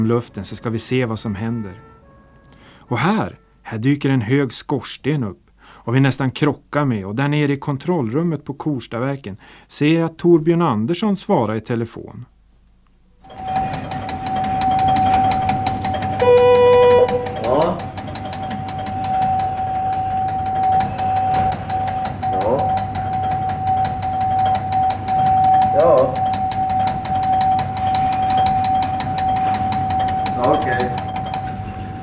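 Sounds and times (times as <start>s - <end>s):
speech: 0.0s - 2.0s, 2.9s - 12.4s, 13.2s - 13.6s
chime: 13.2s - 32.0s
low machinery hum: 13.3s - 32.0s
piercing electronic alarm tone in a control room: 13.3s - 32.0s
warbling alarm beeps: 13.3s - 32.0s.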